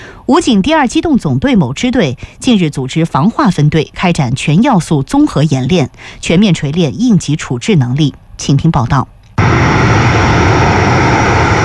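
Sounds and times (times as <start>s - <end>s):
speech: 0.3s - 9.6s
fixed-wing anti-submarine patrol aircraft engine roar on a training sortie: 9.4s - 11.6s.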